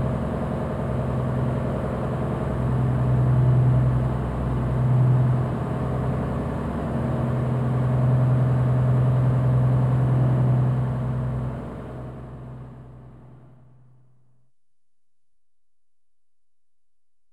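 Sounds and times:
lifeboat engines running constantly: 0.0s - 13.4s.

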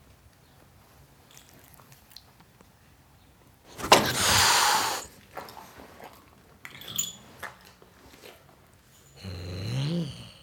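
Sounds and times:
tom cat hissing at a dog: 3.7s - 5.1s.

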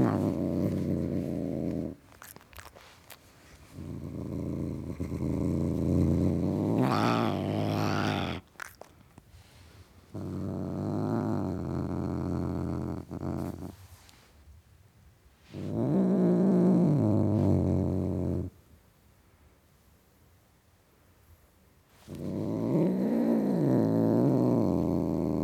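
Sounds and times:
male tom cat growling: 0.0s - 3.0s, 3.6s - 9.0s, 10.1s - 13.8s, 15.5s - 18.5s, 22.0s - 25.4s.

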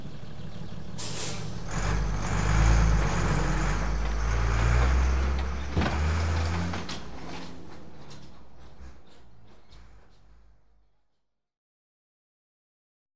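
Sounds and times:
refuse skip loaded onto lorry: 0.0s - 10.5s.

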